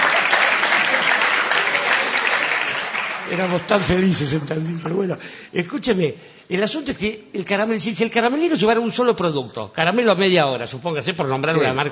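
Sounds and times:
audience applause: 0.0s - 5.2s
speech: 3.3s - 11.8s.

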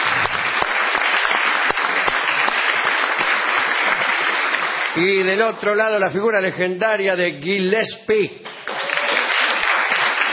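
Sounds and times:
audience applause: 0.0s - 5.9s, 8.5s - 10.3s
speech: 5.0s - 8.5s.

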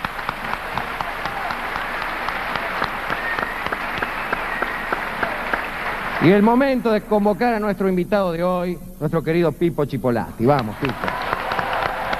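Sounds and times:
audience applause: 0.0s - 7.0s, 10.5s - 12.1s
speech: 6.2s - 11.2s.

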